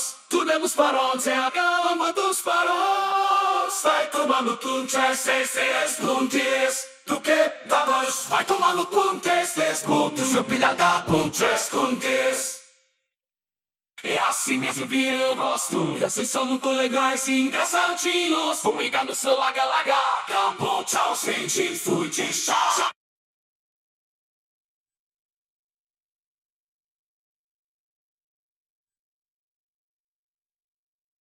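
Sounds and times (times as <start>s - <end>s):
person singing: 0.0s - 12.6s, 14.0s - 23.0s.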